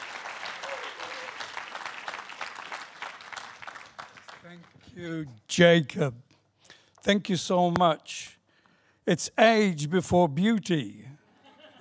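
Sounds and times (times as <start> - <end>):
congregation applause welcoming a preacher at a church service: 0.0 - 5.0
speech: 5.0 - 6.2, 7.0 - 8.4, 9.1 - 11.1.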